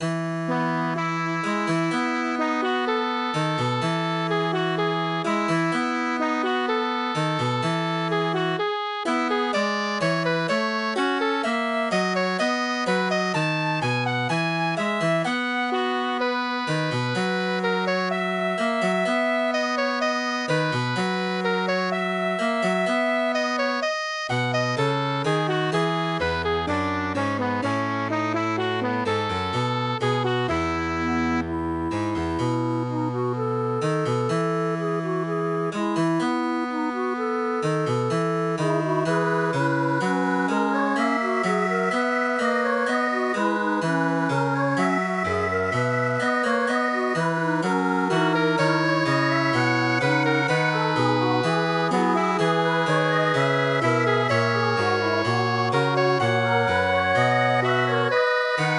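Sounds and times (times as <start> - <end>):
MIDI music: 0.5 - 58.7.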